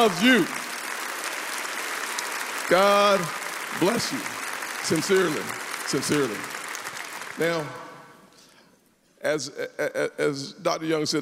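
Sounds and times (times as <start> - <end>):
speech: 0.0 - 0.6, 2.7 - 6.5, 7.4 - 7.8, 9.2 - 11.1
audience applause standing ovation: 0.0 - 8.0.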